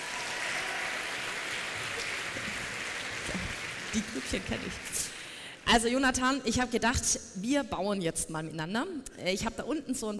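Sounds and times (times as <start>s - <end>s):
audience applause: 0.0s - 5.4s
speech: 3.9s - 5.1s, 5.7s - 10.1s.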